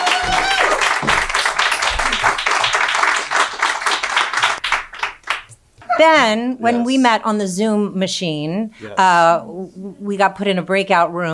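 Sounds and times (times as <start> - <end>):
crowd applauding: 0.0 - 5.6
speech: 6.0 - 11.3.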